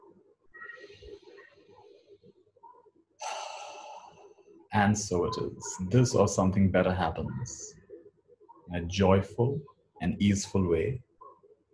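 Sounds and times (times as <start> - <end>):
deep breathing during a guided visualization: 3.2 - 4.3
speech: 4.7 - 7.8, 8.7 - 11.1.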